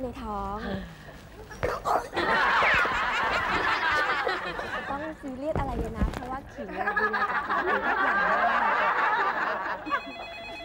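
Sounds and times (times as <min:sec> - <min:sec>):
speech: 0:00.0 - 0:02.4, 0:04.3 - 0:09.2
laughter: 0:02.0 - 0:05.2, 0:06.6 - 0:10.6
telephone ringing with a bright warbling ringtone: 0:09.8 - 0:10.6.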